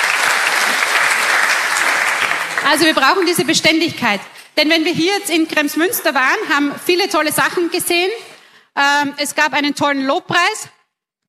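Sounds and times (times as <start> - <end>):
audience applause: 0.0 - 3.5
speech: 2.7 - 10.8.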